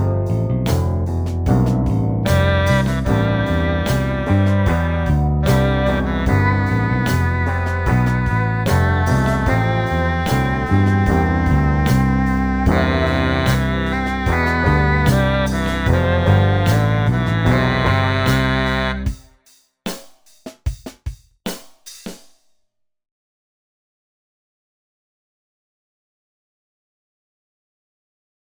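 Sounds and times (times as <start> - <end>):
midi melody: 0.0 - 19.3.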